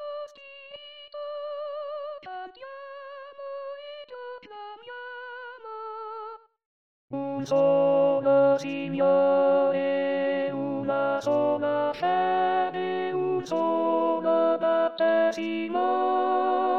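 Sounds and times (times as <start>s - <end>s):
contraltos singing: 7.2s - 16.7s.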